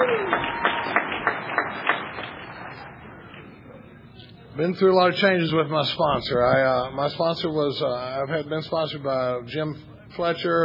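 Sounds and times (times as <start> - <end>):
small group clapping: 0.0 - 3.6
soft crowd noise: 0.0 - 10.6
speech: 4.6 - 10.6.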